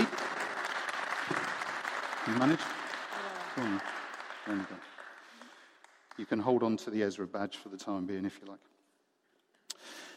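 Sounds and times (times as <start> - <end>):
audience applause: 0.0 - 6.8
speech: 2.3 - 2.8, 3.6 - 4.9, 6.2 - 8.7.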